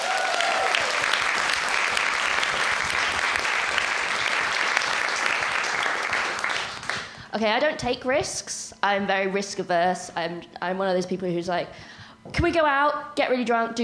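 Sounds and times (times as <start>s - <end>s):
audience applause: 0.0s - 7.2s
speech: 7.4s - 13.8s.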